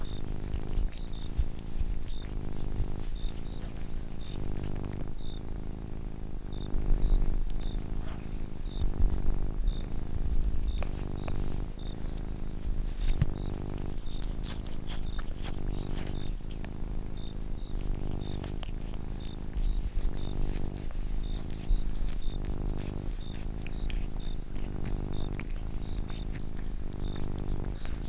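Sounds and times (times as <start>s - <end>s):
domestic cat purring steadily: 0.0s - 28.0s.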